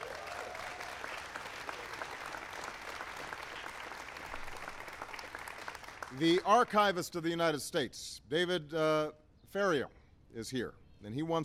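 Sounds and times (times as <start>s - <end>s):
audience round of applause: 0.0s - 6.8s
speech: 6.2s - 11.4s.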